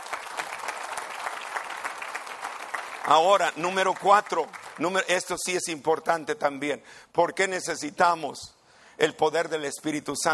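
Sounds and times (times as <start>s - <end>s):
audience applause: 0.0s - 4.8s
speech: 3.1s - 10.3s.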